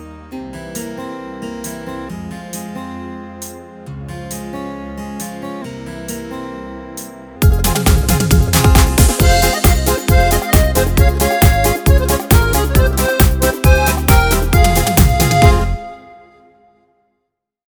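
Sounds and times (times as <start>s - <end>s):
pop dance music: 7.4s - 15.9s.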